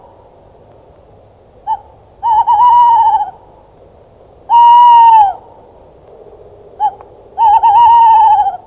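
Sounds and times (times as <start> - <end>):
tawny owl: 1.7 - 3.4, 4.5 - 5.5, 6.8 - 8.6.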